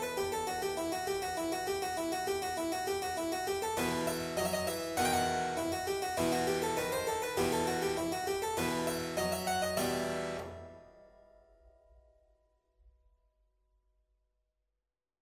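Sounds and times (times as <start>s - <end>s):
piano piece: 0.0s - 11.6s.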